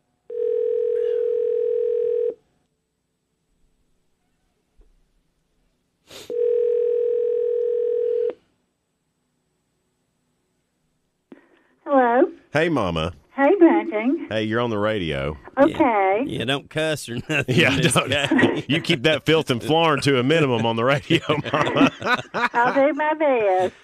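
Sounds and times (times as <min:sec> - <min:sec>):
telephone ringback tone: 0:00.3 - 0:02.4, 0:06.3 - 0:08.4
speech: 0:12.5 - 0:13.2, 0:13.9 - 0:23.8
laughter: 0:17.0 - 0:23.8.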